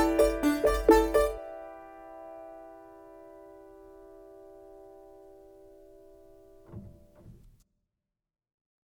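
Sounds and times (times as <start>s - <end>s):
karaoke singing: 0.0s - 1.4s.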